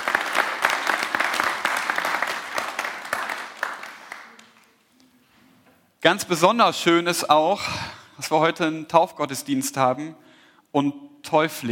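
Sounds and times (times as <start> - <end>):
audience applause: 0.0 - 4.6
speech: 6.0 - 11.7.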